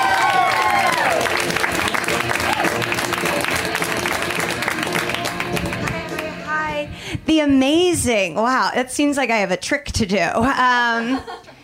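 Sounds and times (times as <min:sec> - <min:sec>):
audience applause welcoming a comedian onto a stand-up stage: 0:00.0 - 0:06.4
crowd noise: 0:00.0 - 0:06.8
speech: 0:07.4 - 0:11.4.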